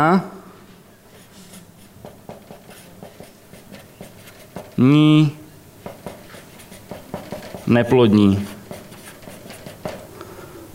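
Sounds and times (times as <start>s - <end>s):
speech: 0.0s - 0.4s, 4.8s - 5.4s, 7.7s - 8.5s
pen or chalk handwriting strokes: 1.1s - 4.8s, 5.8s - 10.1s.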